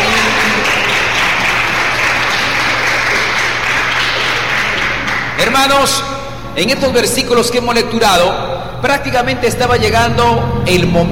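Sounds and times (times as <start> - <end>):
audience applause: 0.0 - 5.6
speech: 5.6 - 11.1.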